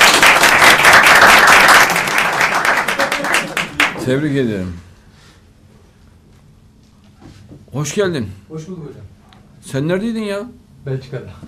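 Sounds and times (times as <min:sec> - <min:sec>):
audience clapping: 0:00.0 - 0:04.2
speech: 0:04.0 - 0:04.9, 0:07.8 - 0:11.4.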